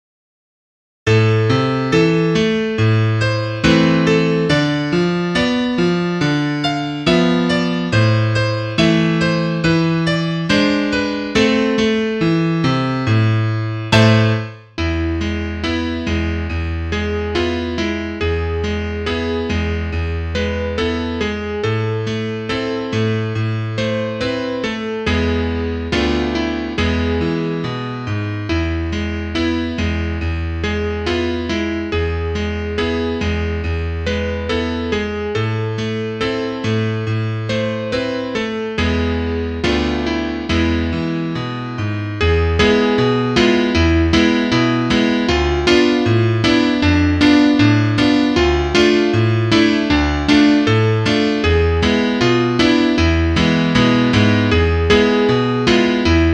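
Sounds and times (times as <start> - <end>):
solo piano: 1.1 - 56.3
trumpet: 14.0 - 14.6.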